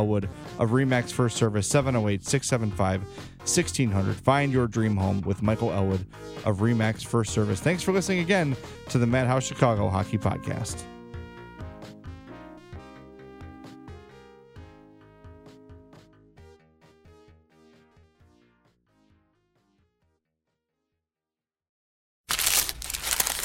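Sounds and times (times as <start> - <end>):
speech: 0.0 - 11.0
melodic music passage: 7.7 - 16.2
paper wrapper crinkling as a McDonald's steak egg and cheese bagel is unwrapped: 22.3 - 23.4.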